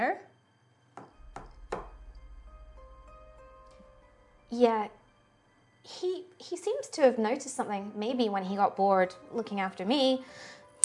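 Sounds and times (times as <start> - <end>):
faint tonal background: 0.0 - 10.8
soft knocks on a wooden door: 1.0 - 2.1
low steady hum: 1.1 - 8.3
speech: 4.5 - 5.0, 5.9 - 10.6.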